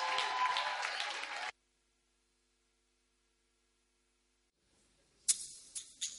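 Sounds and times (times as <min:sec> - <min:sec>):
scattered sharp hand claps: 0:00.0 - 0:01.5
audience applause: 0:00.0 - 0:01.6.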